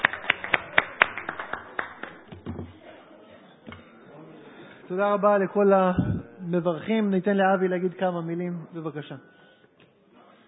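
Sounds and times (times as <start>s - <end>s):
audience applause: 0.0s - 2.4s
speech: 4.9s - 9.4s.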